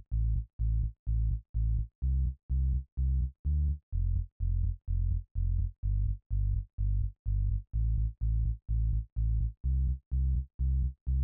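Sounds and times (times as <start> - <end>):
bass drop: 0.0 - 11.1.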